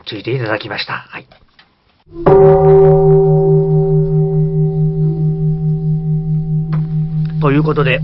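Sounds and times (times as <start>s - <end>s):
speech: 0.1s - 1.4s, 2.1s - 3.6s, 7.4s - 8.0s
Ikaruga temple bell ringing: 2.1s - 8.0s.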